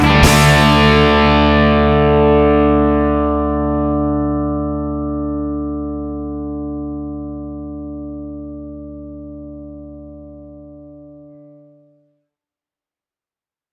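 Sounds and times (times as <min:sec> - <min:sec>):
band playing: 0:00.0 - 0:03.1
modern 90s crunch guitar through Manley tube mic preamp: 0:00.0 - 0:11.8.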